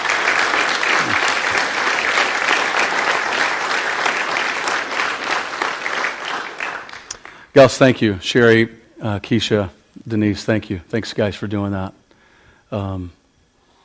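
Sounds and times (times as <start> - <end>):
crowd applause: 0.0 - 7.5
speech: 7.6 - 12.0, 12.7 - 13.2.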